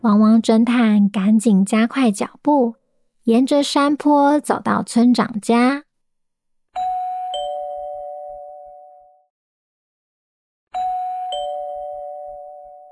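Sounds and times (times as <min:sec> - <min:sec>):
speech: 0:00.0 - 0:05.9
doorbell ringing with two-tone ding-dong: 0:06.8 - 0:09.1, 0:10.8 - 0:12.9.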